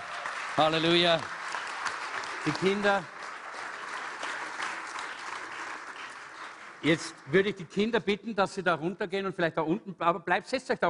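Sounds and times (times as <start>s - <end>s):
church congregation applauding: 0.0s - 8.0s
speech: 0.6s - 1.4s, 2.4s - 3.2s, 6.8s - 10.8s.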